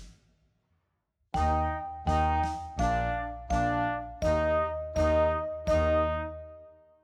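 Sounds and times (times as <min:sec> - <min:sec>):
loud slow glockenspiel: 0:01.4 - 0:06.4.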